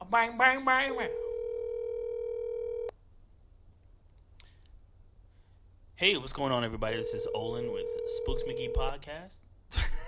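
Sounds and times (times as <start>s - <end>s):
speech: 0.1s - 1.2s, 6.0s - 9.9s
telephone line tone while a call is placed: 1.0s - 2.9s, 6.9s - 8.9s.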